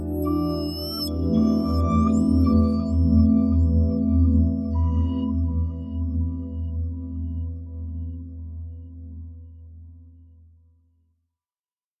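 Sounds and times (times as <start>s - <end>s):
deep ambient music: 0.0s - 10.5s.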